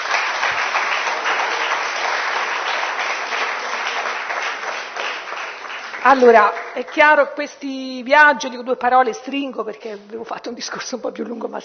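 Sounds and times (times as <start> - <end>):
audience applause: 0.0 - 7.2
speech: 6.0 - 11.6.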